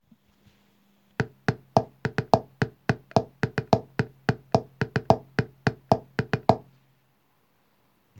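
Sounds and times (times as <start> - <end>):
rhythm: 1.2 - 6.7.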